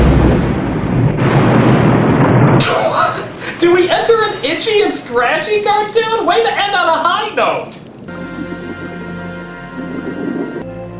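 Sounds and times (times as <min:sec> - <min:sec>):
grenade explosion blowing up a shark inside its mouth: 0:00.0 - 0:05.5
speech: 0:04.6 - 0:07.8.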